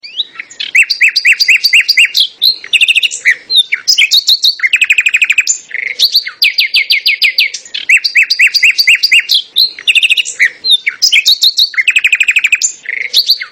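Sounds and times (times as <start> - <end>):
birds: 0.0 - 13.5.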